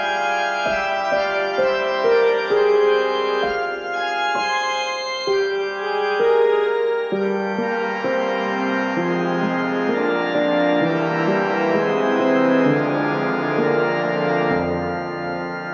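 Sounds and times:
organ playing: 0.0 - 15.7.

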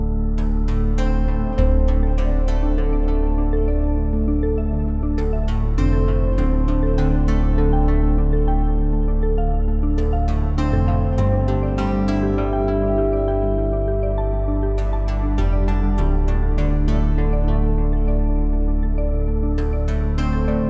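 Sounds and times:
space background music: 0.0 - 20.6.

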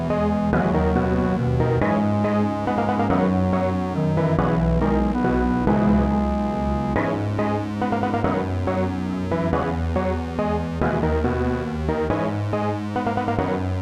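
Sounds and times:
port town theme music: 0.0 - 13.7.

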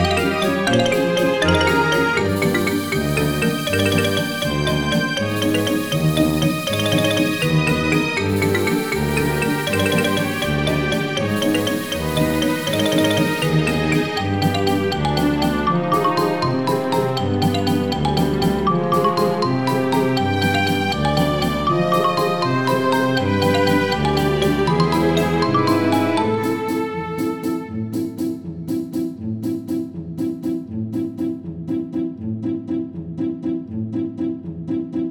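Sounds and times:
loopable waltz music: 0.0 - 35.0.

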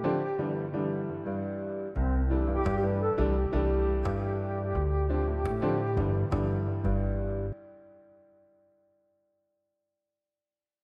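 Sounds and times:
bossa music: 0.0 - 7.7.

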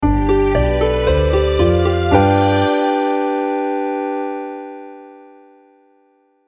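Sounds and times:
fanfare: 0.0 - 4.4.

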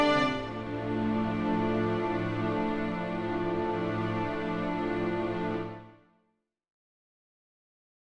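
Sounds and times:
sad orchestral background music: 0.0 - 6.0.

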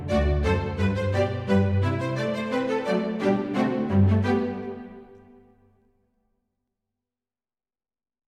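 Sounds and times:
classical piece arranged for strings: 0.0 - 5.7.

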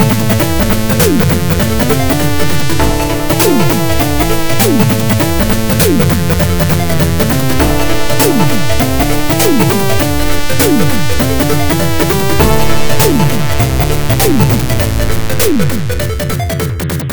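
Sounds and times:
jazz club music: 0.0 - 17.1.

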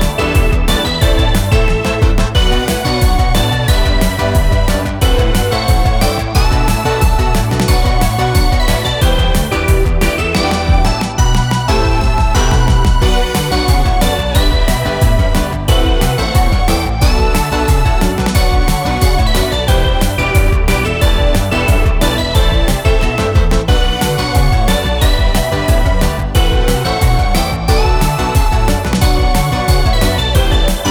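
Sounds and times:
fairy battle music at 180 bpm: 0.0 - 30.8.

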